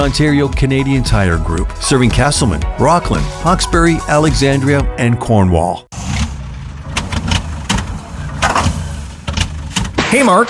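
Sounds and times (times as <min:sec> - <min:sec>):
speech: 0:00.0 - 0:06.1, 0:10.1 - 0:10.4
engine cranking but failing to start: 0:06.0 - 0:10.0.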